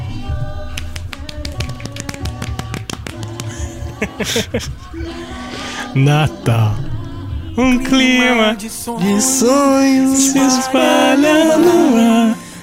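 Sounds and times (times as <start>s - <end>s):
hands clapping: 0.7s - 4.8s
laughter: 3.2s - 6.7s
speech: 4.2s - 5.4s, 6.0s - 6.9s, 7.6s - 12.4s.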